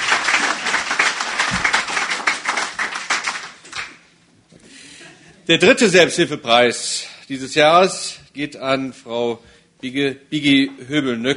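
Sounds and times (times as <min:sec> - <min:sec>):
short group applause: 0:00.0 - 0:04.0
speech: 0:05.5 - 0:11.3.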